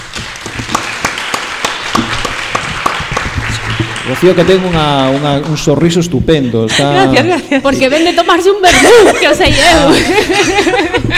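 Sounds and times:
crowd audience applause: 0.0s - 6.2s
speech: 4.1s - 11.1s
laughter: 6.3s - 11.1s.

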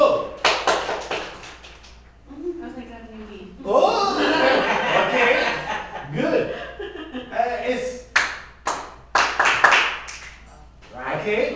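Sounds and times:
group clapping for a student: 0.3s - 2.0s, 8.1s - 10.5s
laughter: 3.8s - 7.4s.

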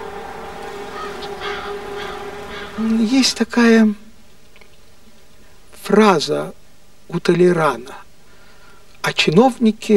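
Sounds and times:
jackdaws and rooks cawing, flying down from bell towers: 0.0s - 3.4s
speech: 2.8s - 4.0s, 5.9s - 8.0s, 9.1s - 9.9s.

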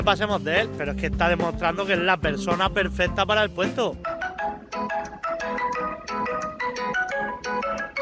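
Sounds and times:
speech: 0.0s - 4.1s
phone ringtone ringing unanswered: 4.0s - 8.0s.

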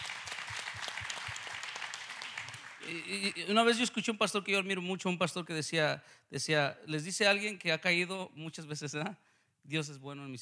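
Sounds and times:
audience applause at a religious question-and-answer gathering: 0.0s - 3.0s
speech: 2.9s - 10.4s.

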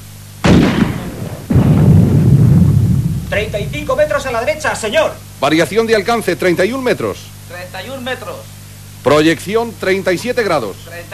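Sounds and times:
artillery fire from guns in the Watchung mountains: 0.4s - 4.8s
speech: 3.3s - 11.1s.

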